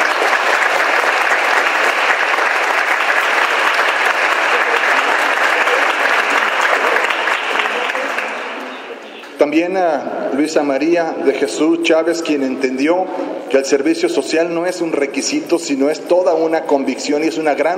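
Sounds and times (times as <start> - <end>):
large audience applause: 0.0 - 9.1
speech: 9.5 - 17.7.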